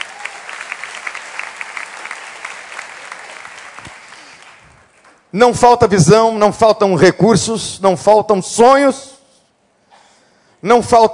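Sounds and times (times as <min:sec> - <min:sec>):
audience applauding: 0:00.0 - 0:05.2
speech: 0:05.3 - 0:09.1, 0:10.6 - 0:11.1.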